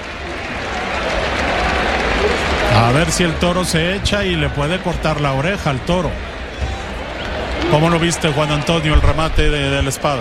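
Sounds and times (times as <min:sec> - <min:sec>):
bullring crowd ovation, applause: 0:00.0 - 0:10.1
speech: 0:02.8 - 0:06.3, 0:07.7 - 0:10.1.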